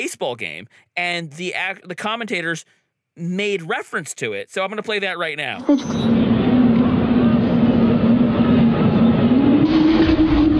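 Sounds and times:
speech: 0:00.0 - 0:06.4
eerie trumpet-like sky trumpet tone: 0:06.1 - 0:10.5.

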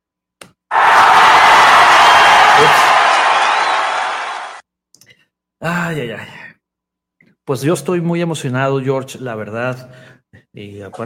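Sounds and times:
applause and cheering sound effect: 0:00.7 - 0:04.6
speech: 0:05.6 - 0:06.4, 0:07.5 - 0:11.0.

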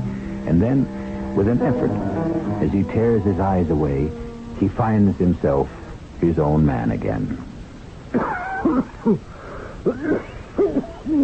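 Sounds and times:
speech: 0:00.4 - 0:07.5, 0:08.1 - 0:11.2
wicked cough: 0:09.9 - 0:11.2.

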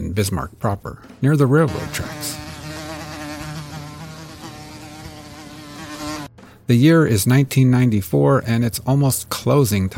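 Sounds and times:
speech: 0:00.2 - 0:02.4, 0:06.7 - 0:09.9
housefly buzzing: 0:01.7 - 0:06.4.

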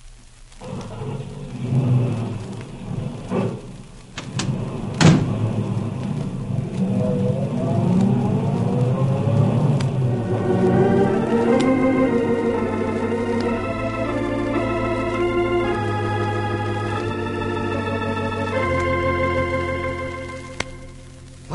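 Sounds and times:
car engine rumbling: 0:00.7 - 0:21.5
door-like bang: 0:04.2 - 0:05.6.

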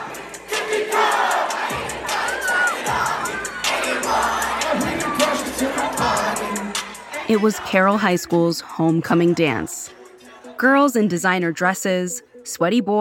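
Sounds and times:
hundreds of kids shouting along to a hip hop song: 0:01.1 - 0:08.1
speech: 0:07.3 - 0:10.0, 0:10.6 - 0:13.0.

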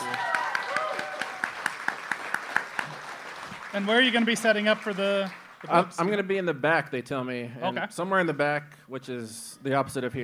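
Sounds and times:
audience applause: 0:00.0 - 0:06.0
speech: 0:03.7 - 0:10.2.

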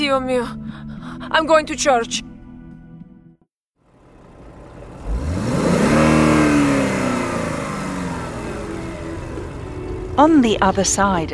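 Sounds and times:
speech: 0:00.0 - 0:02.3, 0:10.2 - 0:11.3
1970 Chevelle car engine revving: 0:03.9 - 0:11.3.

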